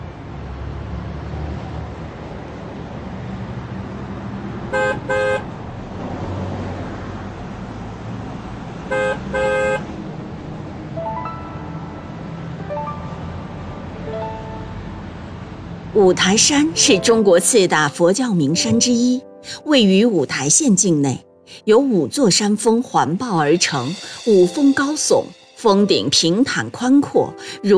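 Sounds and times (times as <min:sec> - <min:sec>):
coach bus engine rumble leaving station: 0:00.0 - 0:19.2
coach bus horn honks: 0:04.7 - 0:05.5, 0:08.9 - 0:10.0
speech: 0:16.0 - 0:27.7.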